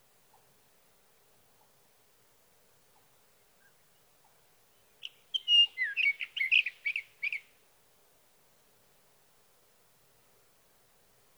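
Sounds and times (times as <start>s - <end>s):
Sage thrasher whistling and warbling: 5.4s - 7.4s.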